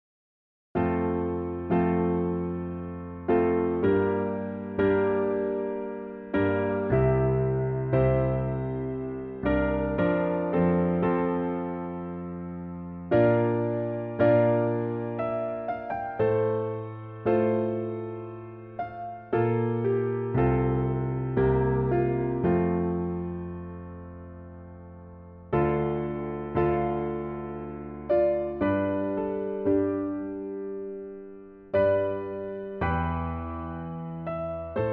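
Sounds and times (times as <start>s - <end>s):
piano piece: 0.8s - 34.9s.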